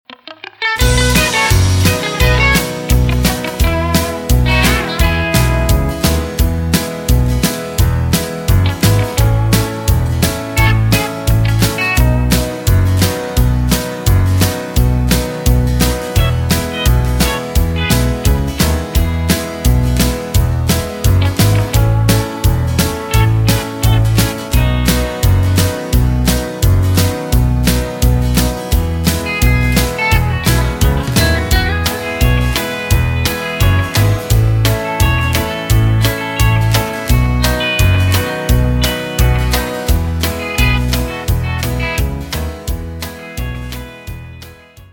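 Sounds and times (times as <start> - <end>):
music without backing vocals: 0.2 - 44.9.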